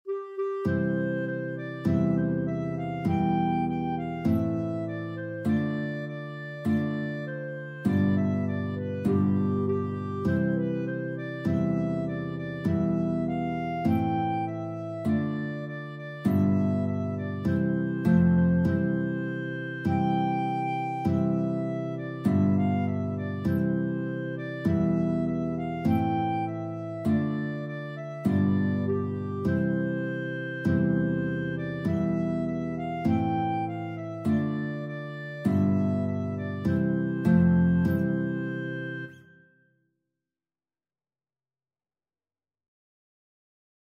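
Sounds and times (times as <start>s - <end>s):
guitar and clarinet duet: 0.0s - 39.6s.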